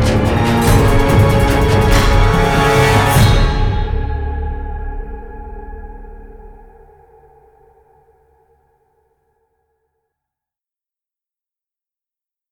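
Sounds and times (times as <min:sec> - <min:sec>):
waltz music: 0:00.0 - 0:04.2.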